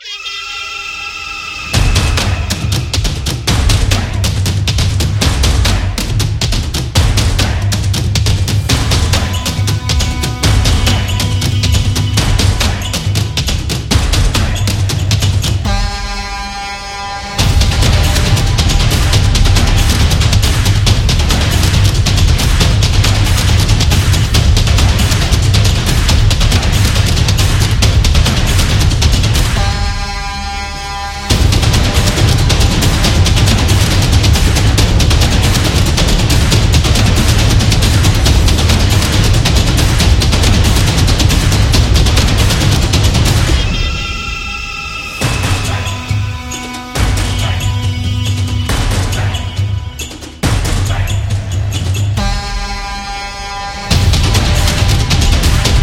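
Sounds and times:
sport commercial music: 0:00.0 - 0:55.8.

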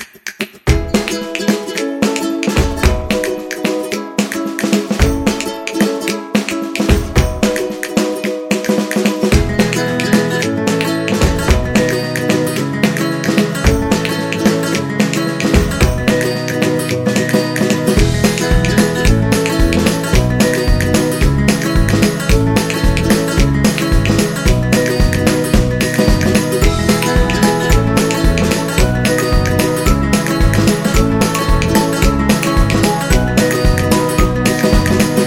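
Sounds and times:
cheerful happy music: 0:00.7 - 0:35.2.

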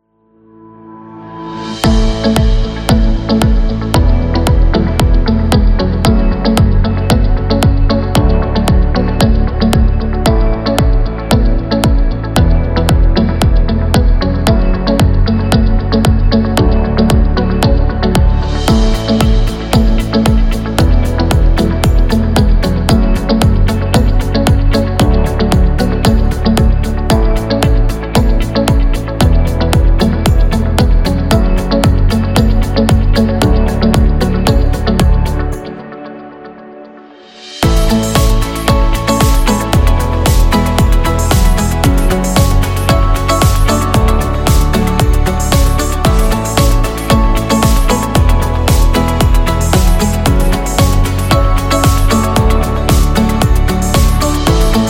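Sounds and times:
uplifting background music: 0:00.2 - 0:54.8.

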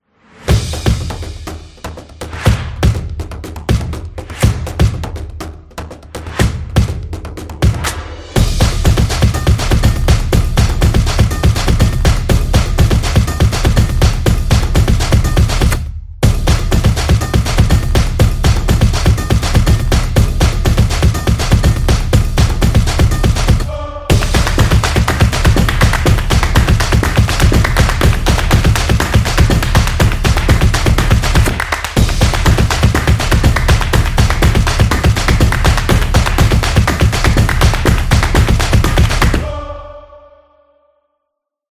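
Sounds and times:
percussion: 0:00.1 - 0:40.0.

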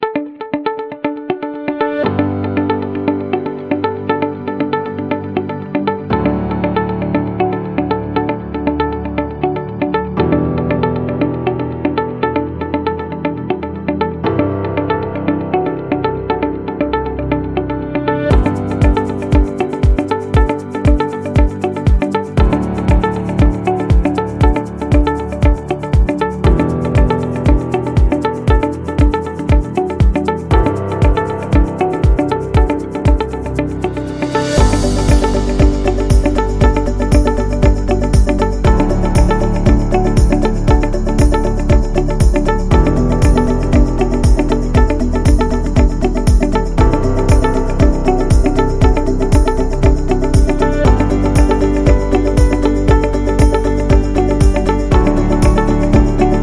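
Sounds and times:
simple background music: 0:00.0 - 0:56.4.

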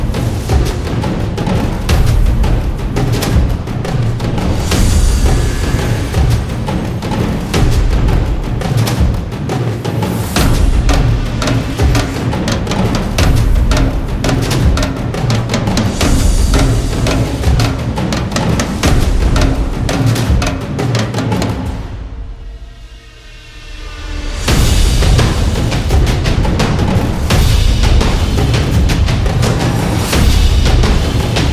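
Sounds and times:
epic cinematic drums: 0:00.0 - 0:31.5.

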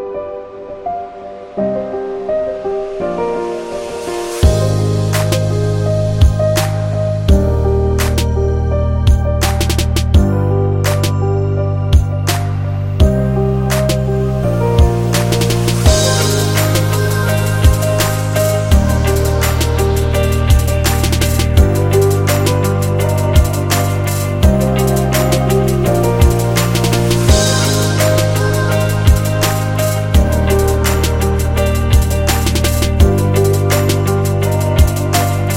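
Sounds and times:
fashion hip hop music: 0:00.8 - 0:35.5.

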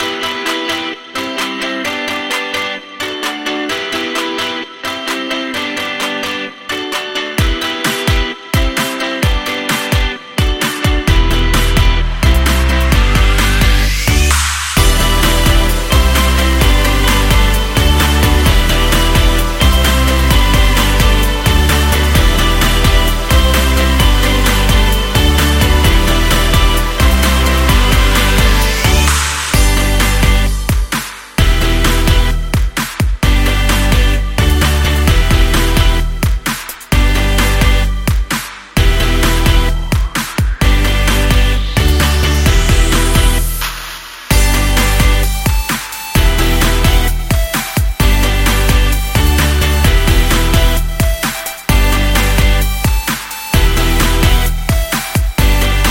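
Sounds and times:
upbeat indie pop corporate music: 0:00.0 - 0:55.8.

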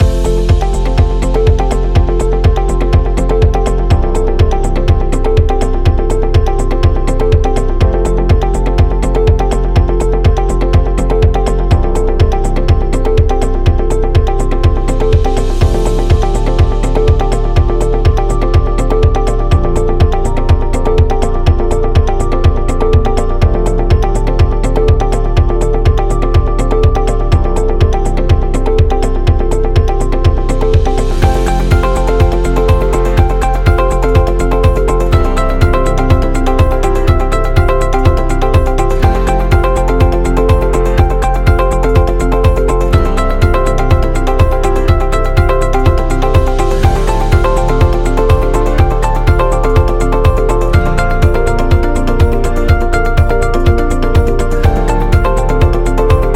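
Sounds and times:
upbeat corporate music loop: 0:00.0 - 0:56.3.

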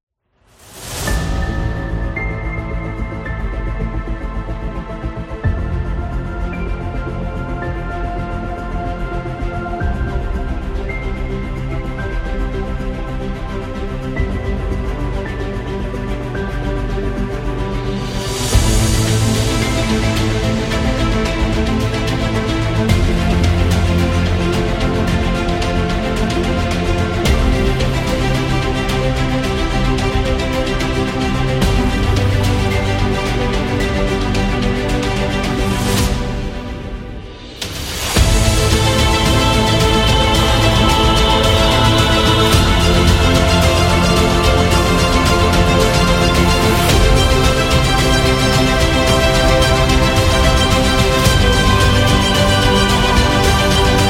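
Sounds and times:
epic music: 0:00.4 - 0:54.0.

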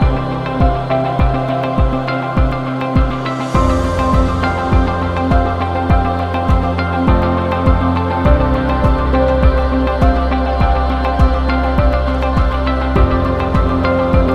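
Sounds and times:
corporate ambient music: 0:00.0 - 0:14.3.

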